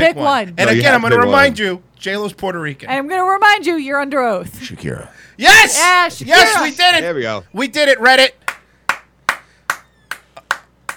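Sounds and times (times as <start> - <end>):
speech: 0.0 - 8.4
hand claps: 8.4 - 10.9.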